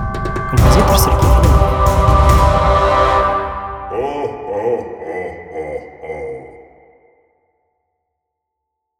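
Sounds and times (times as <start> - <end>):
Halloween parody of a Christmas song: 0.5 - 7.2.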